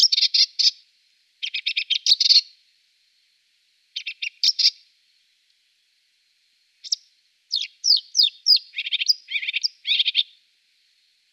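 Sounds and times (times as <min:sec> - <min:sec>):
Marsh warbler song: 0:00.0 - 0:00.8, 0:01.4 - 0:02.5, 0:04.0 - 0:04.8, 0:06.8 - 0:10.4.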